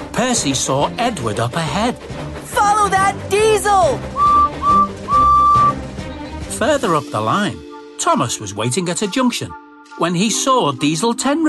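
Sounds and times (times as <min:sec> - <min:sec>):
speech: 0:00.2 - 0:04.2, 0:06.6 - 0:11.4
steam engine whistle peeping: 0:04.1 - 0:05.8.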